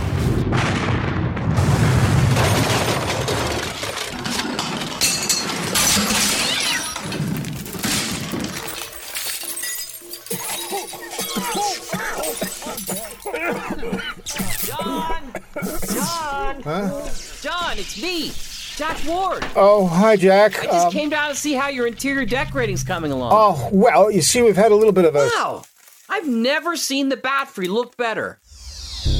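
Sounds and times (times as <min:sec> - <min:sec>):
dynamite explosion: 0:00.0 - 0:08.7
tumbling debris: 0:00.0 - 0:13.8, 0:18.8 - 0:26.6
crashing, shattering glass: 0:02.3 - 0:14.9
laughter: 0:10.3 - 0:17.2
speech: 0:17.8 - 0:28.4.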